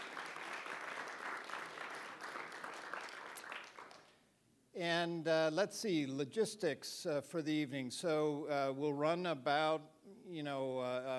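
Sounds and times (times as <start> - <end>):
audience applause: 0.0 - 4.1
speech: 4.8 - 11.1.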